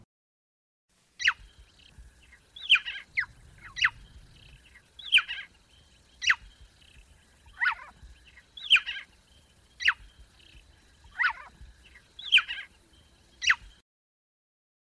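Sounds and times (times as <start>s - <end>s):
Swinhoe's frog calling in short high bird-like chirps: 1.1s - 13.8s.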